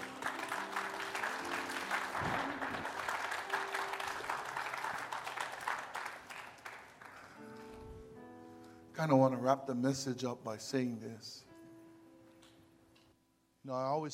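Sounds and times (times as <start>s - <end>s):
audience clapping: 0.0s - 7.8s
speech: 9.0s - 11.5s, 13.7s - 14.1s.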